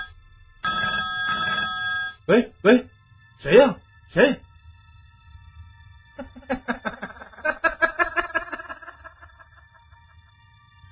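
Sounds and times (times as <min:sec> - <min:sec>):
telephone ringing: 0:00.0 - 0:02.2
speech: 0:02.3 - 0:04.4, 0:06.2 - 0:07.0
laughter: 0:06.2 - 0:10.0.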